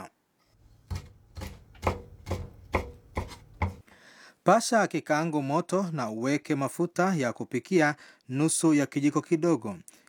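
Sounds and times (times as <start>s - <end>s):
knife chopping prawns into one-centimetre pieces: 0.6s - 3.8s
speech: 4.5s - 10.0s.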